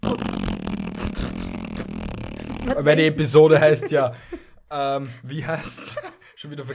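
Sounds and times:
fart sound effect: 0.0 - 2.9
speech: 2.6 - 6.7
laughter: 3.3 - 4.5, 5.3 - 6.7.

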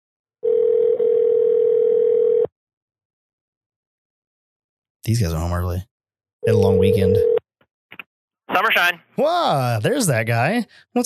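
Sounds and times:
telephone ringback tone on an outgoing call: 0.4 - 2.5, 6.4 - 7.4
speech: 5.0 - 7.4, 8.5 - 11.0.

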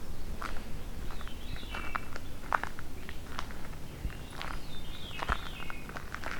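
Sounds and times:
crunching and rustling on leaf litter: 0.3 - 6.3
Veery singing fluty phrases: 1.0 - 2.4, 3.0 - 6.3.

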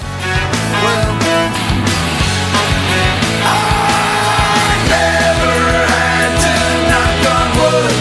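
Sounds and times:
loud driving rock song with dense guitars and drums: 0.0 - 8.0
long sustained high-pitched scream in a song: 3.4 - 7.9.

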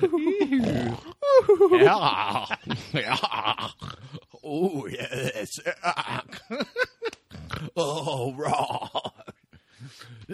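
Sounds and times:
speech: 0.0 - 3.6
laughter: 0.0 - 3.8, 4.9 - 7.3
imitated snoring: 0.4 - 1.2, 3.6 - 4.4, 7.3 - 8.8.

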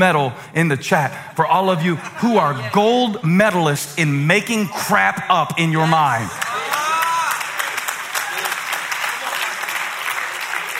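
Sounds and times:
speech: 0.0 - 6.4
laughter: 1.6 - 3.2
audience clapping: 6.1 - 10.7.

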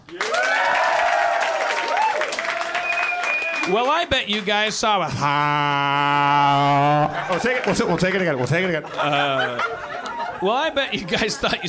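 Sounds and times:
audience applause: 0.0 - 4.8, 7.2 - 8.4
whoops and cheering: 0.1 - 3.7
speech: 3.7 - 9.8, 10.4 - 11.6
laughter: 5.1 - 11.6.

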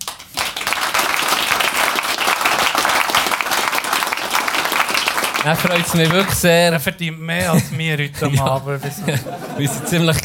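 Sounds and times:
audience applause: 0.0 - 6.6
speech: 5.4 - 10.2
laughter: 7.4 - 10.2.

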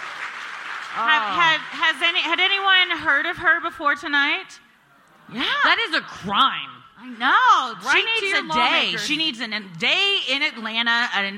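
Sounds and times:
audience applause: 0.0 - 1.8
speech: 1.0 - 4.6, 5.3 - 11.3.

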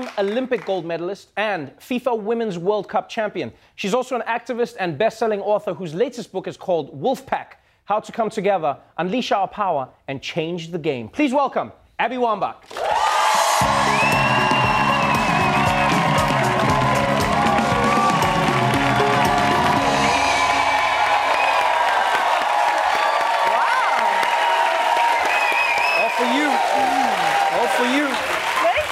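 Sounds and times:
show audience applause in a standing ovation: 0.0 - 0.8, 12.7 - 28.9
speech: 0.0 - 13.0.

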